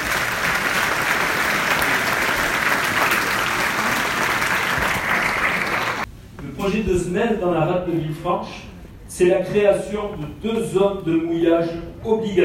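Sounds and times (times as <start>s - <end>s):
audience applause: 0.0s - 6.1s
speech: 6.6s - 12.4s.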